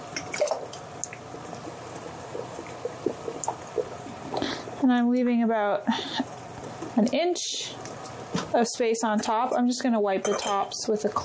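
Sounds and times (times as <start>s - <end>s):
hot liquid ladled into canning jars: 0.0s - 4.6s
speech: 4.8s - 6.2s, 7.0s - 7.8s, 8.5s - 11.2s.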